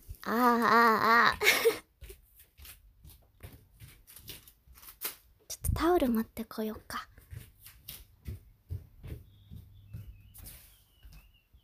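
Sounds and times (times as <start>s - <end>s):
speech: 0.2s - 1.8s, 5.8s - 7.1s
small birds chirping: 8.8s - 11.6s.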